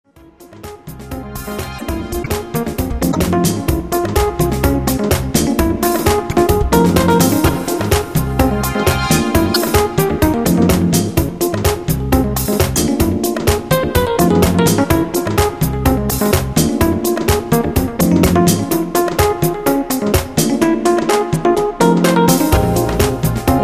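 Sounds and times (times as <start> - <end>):
jazz music: 0.3 - 23.6.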